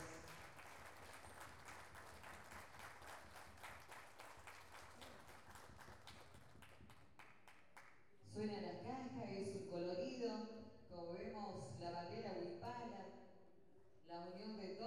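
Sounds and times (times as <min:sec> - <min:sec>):
audience applause: 0:00.0 - 0:07.3
speech: 0:08.4 - 0:13.2.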